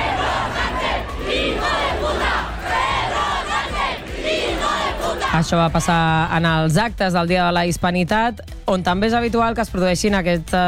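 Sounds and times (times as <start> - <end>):
crowd shouting insults at a politician: 0.0 - 5.4
speech: 5.4 - 10.6.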